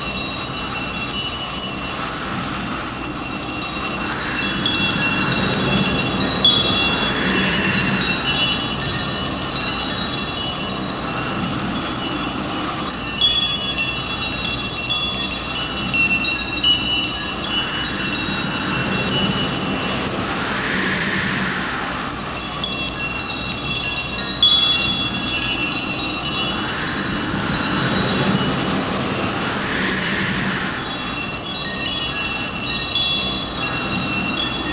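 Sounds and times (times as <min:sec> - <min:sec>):
planet atmosphere background ambience: 0:00.0 - 0:34.7.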